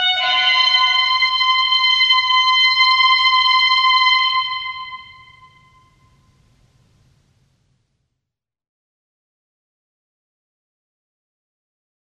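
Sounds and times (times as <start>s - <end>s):
square wave synth walk: 0.1s - 6.0s.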